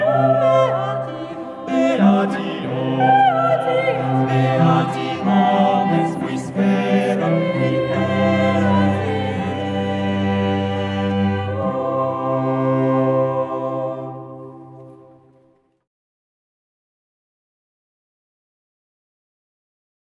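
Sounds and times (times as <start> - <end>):
family ensemble: 0.0 - 15.7.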